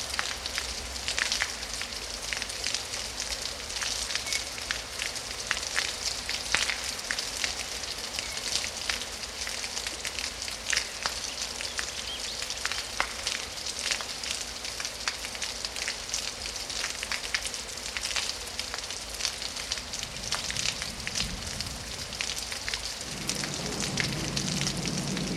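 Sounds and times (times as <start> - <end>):
light and heavy rain: 0.0 - 25.3
thunder: 23.0 - 25.3.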